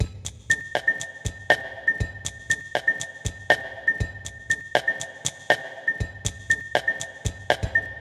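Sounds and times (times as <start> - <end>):
music beat: 0.0 - 8.0.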